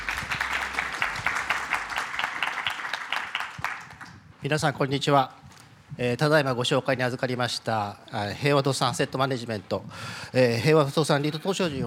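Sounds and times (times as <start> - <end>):
audience applause: 0.0 - 4.2
speech: 4.4 - 11.8.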